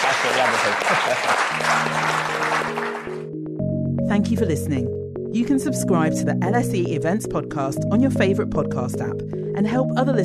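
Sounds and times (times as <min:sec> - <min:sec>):
laughter: 0:00.0 - 0:02.5
audience applause: 0:00.0 - 0:03.3
speech: 0:00.2 - 0:02.9, 0:04.2 - 0:10.2.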